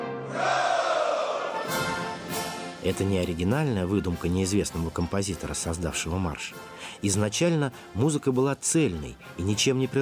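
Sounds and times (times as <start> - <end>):
soldiers shouting a massed Hurrah: 0.3 - 1.6
speech: 2.8 - 10.0.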